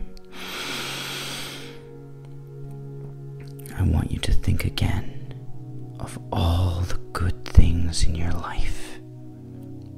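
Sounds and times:
slow deep inhale during a guided meditation for footballers: 0.0s - 2.0s
low sustained musical drone: 0.0s - 9.9s
speech: 3.8s - 5.2s, 6.0s - 8.8s.

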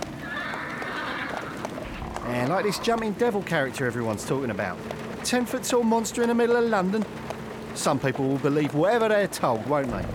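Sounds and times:
horse hooves clip-clopping: 0.0s - 10.1s
horse neighing: 0.2s - 3.7s
speech: 2.4s - 10.1s.

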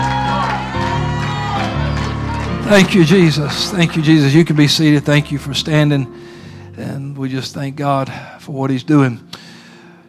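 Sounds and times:
audience shouting praise: 0.0s - 4.7s
audience clapping: 0.0s - 5.1s
speech: 2.7s - 9.4s.

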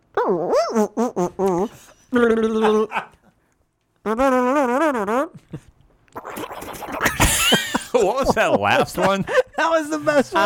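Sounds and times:
person imitating sound effects and a helicopter: 0.1s - 3.1s, 4.0s - 7.9s
speech: 0.3s - 0.9s, 8.3s - 10.4s
laughter: 2.0s - 3.3s, 6.9s - 10.4s.

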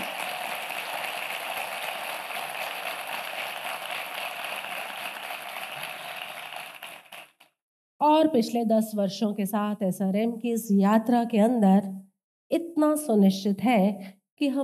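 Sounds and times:
large crowd applause: 0.0s - 7.4s
speech: 8.0s - 14.6s.

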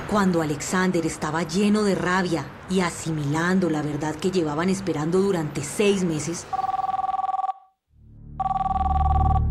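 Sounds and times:
speech: 0.1s - 6.7s
electronic telephone trill of an incoming call: 6.5s - 7.7s, 8.4s - 9.5s.

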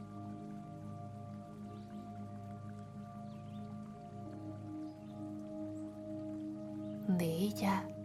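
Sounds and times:
water trickling from stone fountain: 0.0s - 8.0s
speech: 7.1s - 8.0s.

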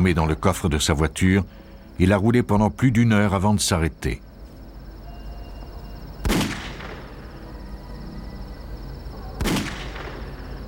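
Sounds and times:
speech: 0.0s - 4.3s
gunshots: 6.2s - 7.1s, 9.4s - 10.3s.

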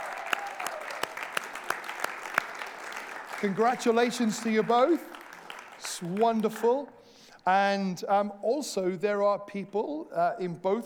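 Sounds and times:
audience cheering and applauding: 0.0s - 6.8s
speech: 3.4s - 5.2s, 6.0s - 10.8s.

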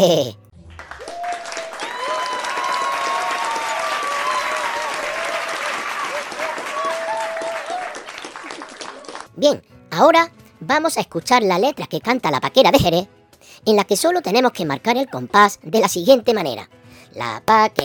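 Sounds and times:
speech: 0.0s - 0.4s, 9.4s - 17.8s
loud applause after singing: 0.7s - 9.3s.

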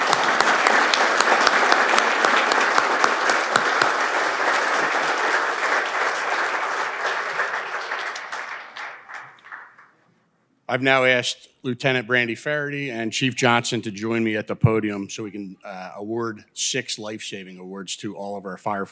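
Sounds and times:
audience applause: 0.0s - 10.0s
speech: 10.8s - 18.9s.

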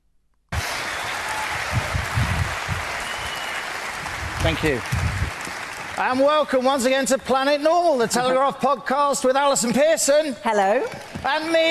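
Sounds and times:
audience applause for a woman: 0.6s - 7.7s
speech: 4.5s - 5.1s, 6.0s - 11.6s.

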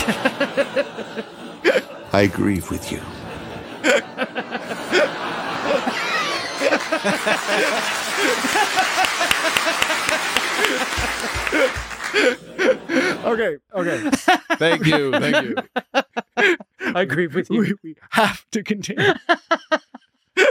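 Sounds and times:
audience chuckles and scattered laughter: 0.0s - 16.9s
speech: 2.2s - 3.2s, 3.8s - 4.3s, 7.0s - 9.8s, 10.7s - 19.8s
audience clapping: 5.7s - 12.8s.

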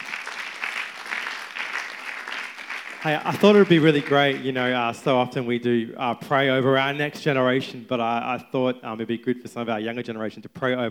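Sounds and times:
audience applause at a Christian worship gathering: 0.0s - 4.7s
speech: 3.0s - 10.8s.

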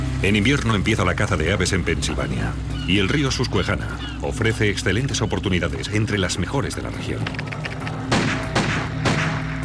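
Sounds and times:
speech: 0.2s - 7.6s
pistol gunshots: 8.1s - 9.6s.

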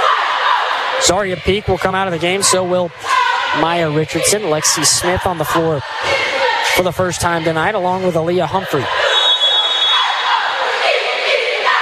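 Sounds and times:
arena crowd noise: 0.0s - 11.7s
speech: 1.0s - 9.0s
referee whistle at basketball game: 8.9s - 10.4s.

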